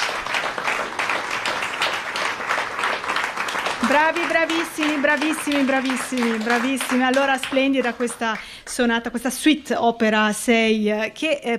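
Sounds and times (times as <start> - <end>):
audience applause after violin-piano performance: 0.0 - 8.3
speech: 3.9 - 11.5.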